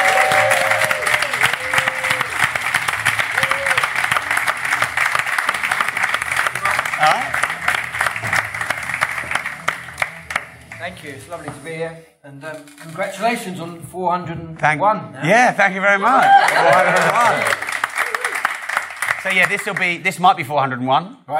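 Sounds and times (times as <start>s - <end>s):
audience applause: 0.0s - 11.0s, 16.1s - 20.0s
speech: 11.1s - 17.6s, 19.2s - 21.3s.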